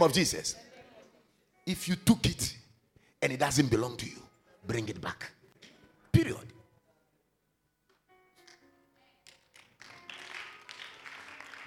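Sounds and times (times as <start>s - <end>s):
speech: 0.0s - 0.7s, 1.7s - 2.6s, 3.2s - 5.4s
church congregation clapping during a sermon: 9.2s - 11.6s.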